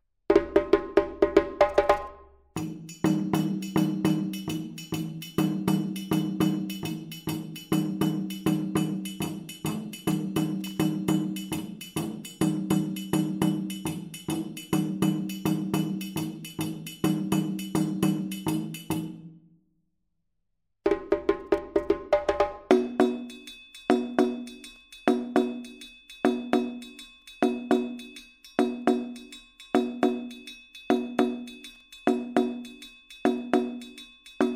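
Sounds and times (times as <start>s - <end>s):
djembe: 0.3s - 18.7s, 20.9s - 23.2s
Djagbe dunun drums: 0.3s - 19.3s, 20.9s - 34.5s.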